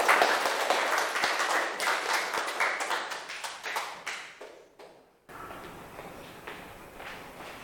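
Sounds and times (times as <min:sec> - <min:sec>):
audience applause: 0:00.0 - 0:04.2.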